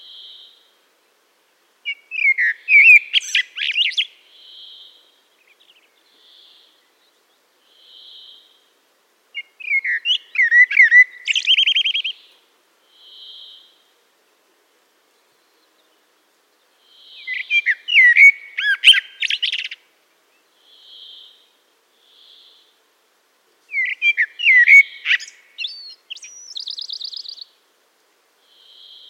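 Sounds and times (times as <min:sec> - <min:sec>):
Eurasian blackbird song: 0:01.8 - 0:08.6, 0:09.4 - 0:13.7, 0:16.6 - 0:22.7, 0:23.7 - 0:27.5.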